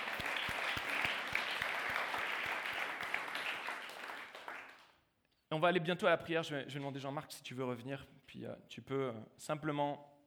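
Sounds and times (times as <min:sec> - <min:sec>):
audience applause: 0:00.0 - 0:04.9
speech: 0:05.5 - 0:10.1.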